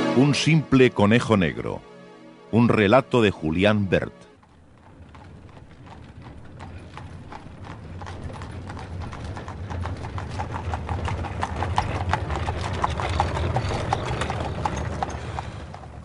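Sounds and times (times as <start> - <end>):
speech: 0.2 - 1.9, 2.5 - 4.3
carriage wheels rumbling: 3.5 - 16.0
horse-drawn carriage hooves clip-clopping: 4.3 - 16.0.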